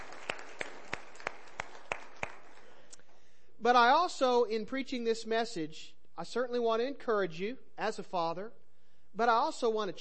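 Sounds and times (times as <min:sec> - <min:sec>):
steady evenly paced clapping: 0:00.0 - 0:03.1
speech: 0:03.6 - 0:08.6, 0:09.2 - 0:09.9.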